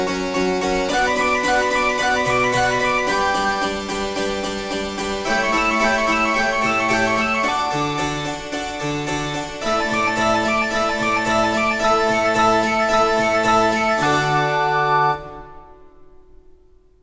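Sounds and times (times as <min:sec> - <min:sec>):
harpsichord: 0:00.0 - 0:16.3
flute: 0:00.7 - 0:04.1, 0:05.2 - 0:08.2, 0:09.6 - 0:15.7
organ: 0:00.8 - 0:04.6, 0:05.2 - 0:15.5.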